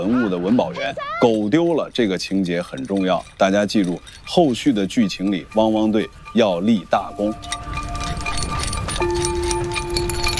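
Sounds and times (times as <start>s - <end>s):
speech: 0.0s - 7.8s
Luoyang spade archaeological probing shovel clinking and scraping: 1.3s - 10.3s
steady ringing tone: 2.2s - 10.3s.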